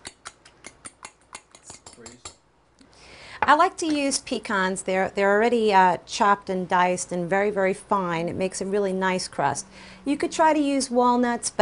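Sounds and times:
egg beaten in a bowl for a pecan crust: 0:00.0 - 0:02.5
speech: 0:03.5 - 0:11.6.

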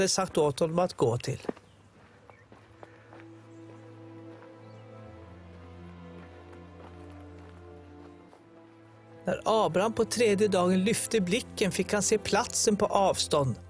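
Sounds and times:
speech: 0:00.0 - 0:01.6, 0:09.3 - 0:13.6
saddled donkey hooves walking: 0:00.0 - 0:09.1
sustained low musical drone and held tones: 0:03.0 - 0:13.6.

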